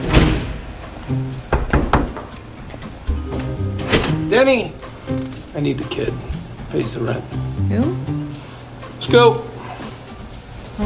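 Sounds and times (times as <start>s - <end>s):
door being shut: 0.0s - 0.7s, 1.5s - 2.3s, 3.8s - 4.3s
speech: 1.1s - 1.5s, 4.3s - 8.2s, 9.0s - 9.5s.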